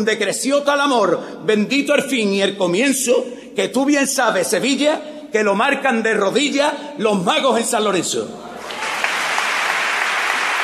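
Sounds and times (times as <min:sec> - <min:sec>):
speech: 0:00.0 - 0:08.7
audience ovation applause: 0:08.6 - 0:10.6.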